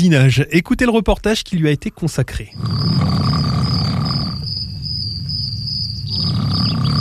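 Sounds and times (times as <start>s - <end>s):
speech: 0.0s - 3.2s
loud human snoring: 2.5s - 4.5s, 6.0s - 7.0s
steady high buzzing tone: 2.6s - 7.0s.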